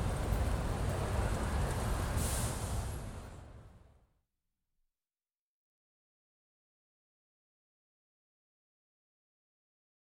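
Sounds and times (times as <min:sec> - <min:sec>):
city main street traffic ambience: 0:00.0 - 0:04.0.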